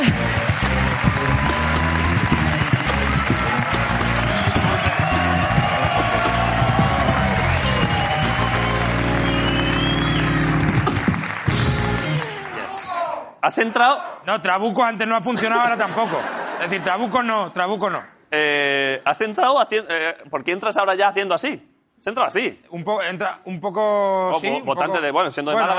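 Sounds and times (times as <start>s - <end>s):
audience applause: 0.0s - 12.9s
speech: 13.4s - 25.7s
laughter: 15.4s - 17.1s.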